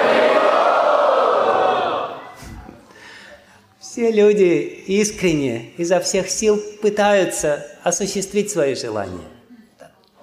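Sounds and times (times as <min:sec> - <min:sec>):
audience loudly shouting a chant: 0:00.0 - 0:02.4
speech: 0:04.0 - 0:09.4.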